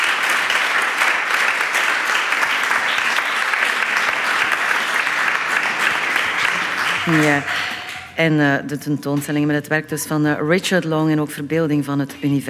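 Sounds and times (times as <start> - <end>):
audience applause: 0.0 - 8.1
speech: 7.1 - 12.4.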